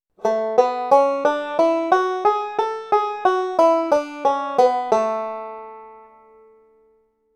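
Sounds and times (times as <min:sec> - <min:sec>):
banjo playing A major scale: 0:00.2 - 0:06.8.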